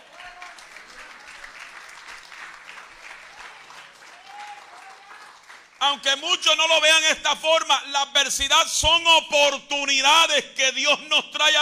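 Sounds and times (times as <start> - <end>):
sustained applause from a large gathering: 0.0 - 5.8
speech: 5.8 - 11.6.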